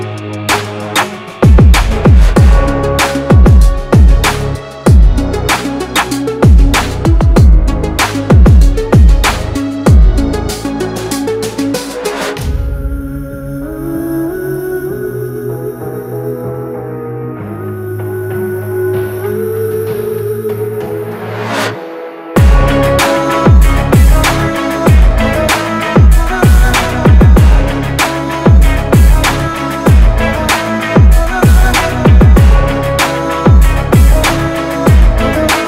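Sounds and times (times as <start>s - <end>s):
hard inspiring motivational rap beat: 0.0s - 14.5s, 22.3s - 35.6s.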